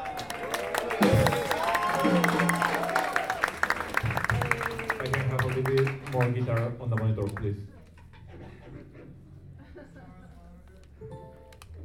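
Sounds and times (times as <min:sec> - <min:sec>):
audience applause: 0:00.0 - 0:07.5
speech: 0:06.2 - 0:07.8.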